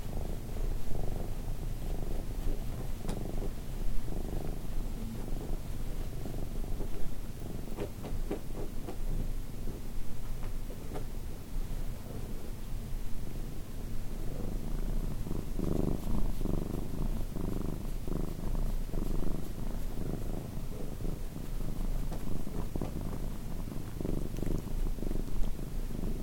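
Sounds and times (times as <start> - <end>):
cat purring: 0.0 - 26.2
faint clicks: 3.0 - 3.2, 23.8 - 25.6.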